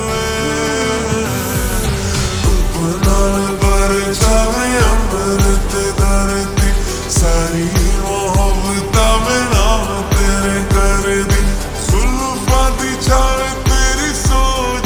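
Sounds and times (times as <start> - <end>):
slowed ringtone with reverb: 0.1 - 14.8.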